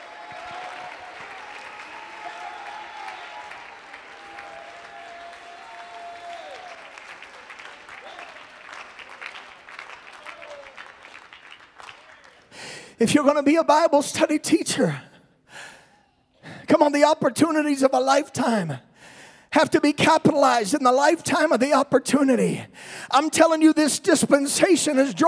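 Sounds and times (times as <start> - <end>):
audience clapping and cheering: 0.0 - 12.8
speech: 13.0 - 15.1, 16.9 - 18.9, 19.6 - 25.2.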